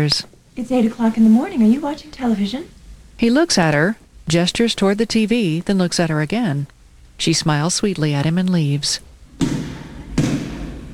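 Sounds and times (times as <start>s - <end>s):
speech: 0.0s - 9.7s
basketball being dribbled: 9.4s - 10.8s.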